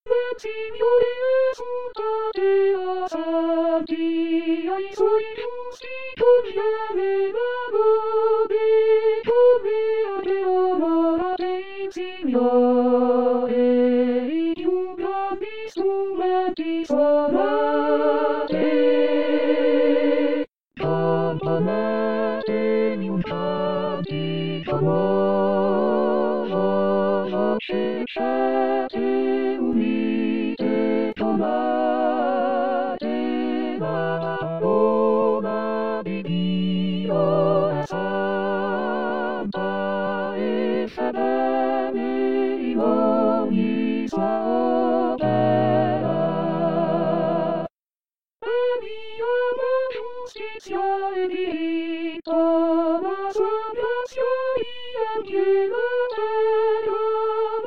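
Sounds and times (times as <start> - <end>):
choir singing: 0.1 - 47.7, 48.4 - 57.6.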